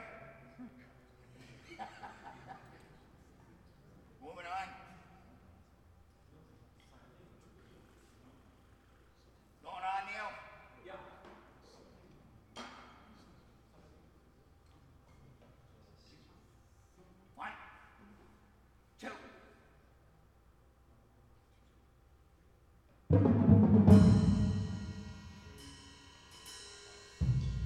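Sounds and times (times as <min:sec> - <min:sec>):
laughter: 0:00.4 - 0:03.2
drum solo in full ensemble practice: 0:23.1 - 0:26.6, 0:27.1 - 0:27.6.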